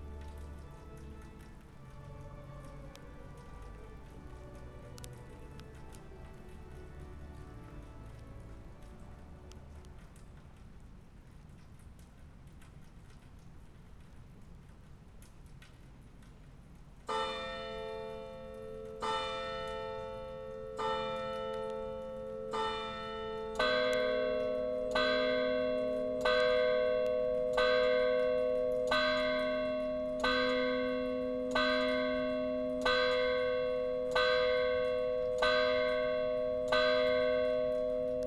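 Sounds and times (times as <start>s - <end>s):
soft steady murmur in Tübingen's old town on Christmas Eve: 0.0s - 38.2s
church bells tolling in Tübingen on Christmas Eve: 17.1s - 38.2s.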